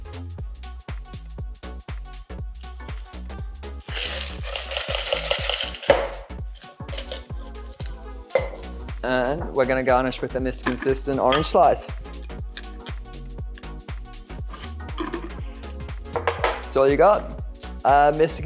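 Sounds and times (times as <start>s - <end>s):
cocktail double strained into a glass: 3.9s - 7.3s
speech: 9.0s - 12.0s, 16.8s - 18.4s.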